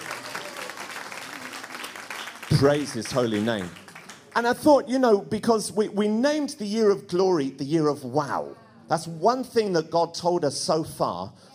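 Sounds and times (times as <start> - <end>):
church congregation clapping: 0.0 - 4.6
speech: 2.5 - 3.8, 4.4 - 11.5.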